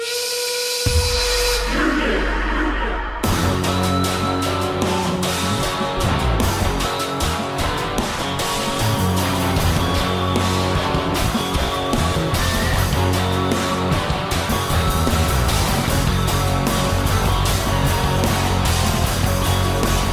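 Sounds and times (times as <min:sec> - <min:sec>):
steam whistle opening a wrestling theme: 0:00.0 - 0:02.1
rock wrestling theme with pounding drums and heavy guitars: 0:00.0 - 0:20.1.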